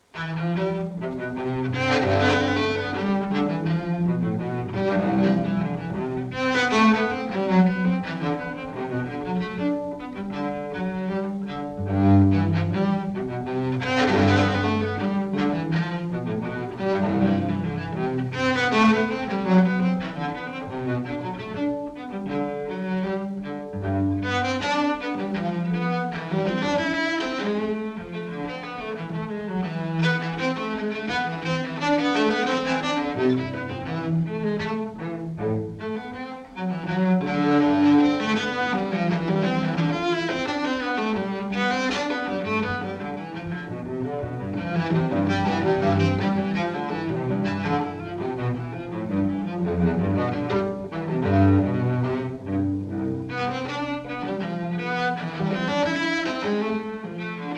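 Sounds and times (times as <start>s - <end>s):
solo cello minuet in C major played live: 0.0s - 57.5s.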